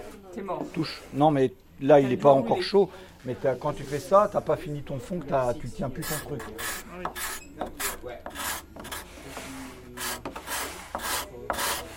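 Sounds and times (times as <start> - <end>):
speech: 0.4 - 8.2
hand scraper scraping wood: 6.0 - 11.9.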